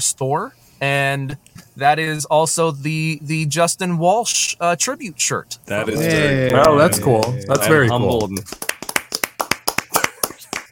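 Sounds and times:
speech: 0.0s - 8.7s
smattering of clapping: 6.9s - 10.7s.

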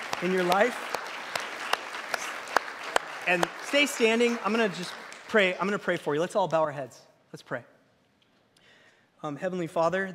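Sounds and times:
audience applause: 0.0s - 5.9s
speech: 0.2s - 0.9s, 3.2s - 7.7s, 9.2s - 10.1s.

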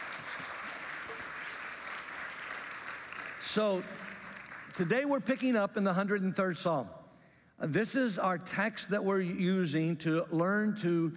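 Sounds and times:
audience clapping: 0.0s - 4.9s
speech: 3.6s - 4.1s, 4.8s - 7.0s, 7.6s - 11.1s.

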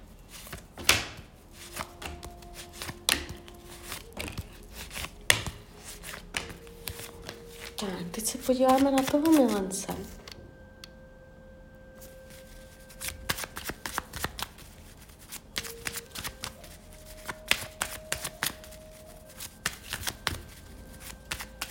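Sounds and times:
faint steady hum: 0.0s - 21.6s
tarot cards shuffling: 0.2s - 10.4s, 12.0s - 21.6s
speech: 8.2s - 10.2s.

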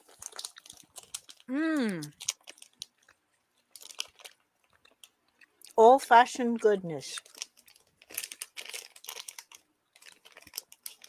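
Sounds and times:
chewing a crunchy apple-flavoured snack: 0.0s - 5.8s, 7.2s - 11.0s
short voiced hum: 1.5s - 2.1s
speech: 1.5s - 2.3s, 5.8s - 7.3s.

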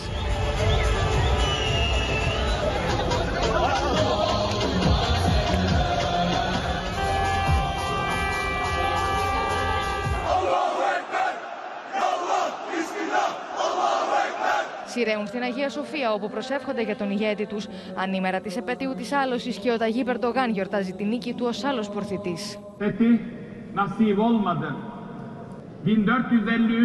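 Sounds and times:
street crowd chanting slogans: 0.0s - 15.8s
street crowd singing: 0.0s - 19.0s
car horns honking: 6.8s - 10.4s
speech: 15.1s - 24.9s, 25.8s - 26.8s.

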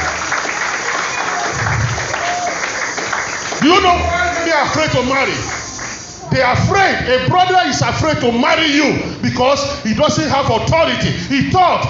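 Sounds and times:
audience clapping: 0.0s - 6.2s
speech: 3.6s - 5.6s, 6.3s - 11.8s.

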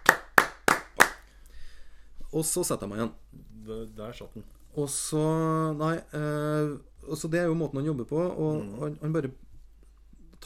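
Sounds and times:
hand clapping: 0.0s - 1.3s
speech: 2.3s - 9.4s.

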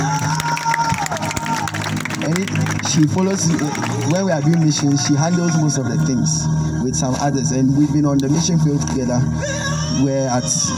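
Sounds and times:
whoops and voices: 0.0s - 1.8s
crowd clapping and cheering: 0.0s - 5.8s
speech: 2.9s - 10.7s.

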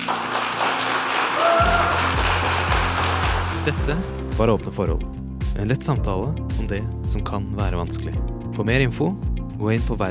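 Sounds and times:
audience applause: 0.0s - 3.8s
speech: 3.6s - 10.0s.

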